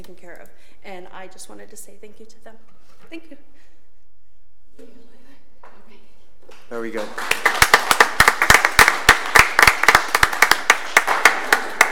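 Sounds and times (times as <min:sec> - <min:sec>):
speech: 0:00.0 - 0:03.8, 0:04.8 - 0:08.2
audience applause: 0:07.0 - 0:11.8.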